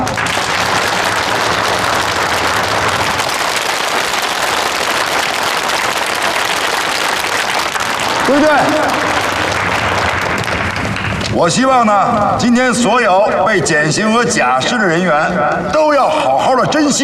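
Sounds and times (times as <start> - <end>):
sustained applause from a large crowd: 0.0 - 11.8
speech: 8.3 - 9.1, 11.4 - 17.0.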